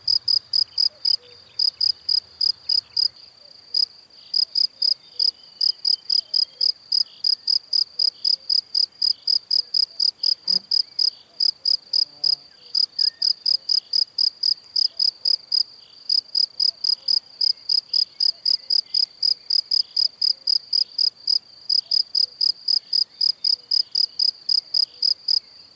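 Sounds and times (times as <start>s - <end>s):
cricket chirping: 0.0s - 25.7s.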